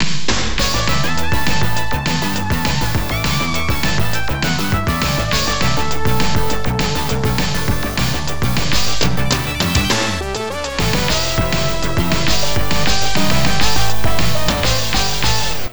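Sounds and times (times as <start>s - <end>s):
pro baseball news jingle: 0.6s - 15.7s.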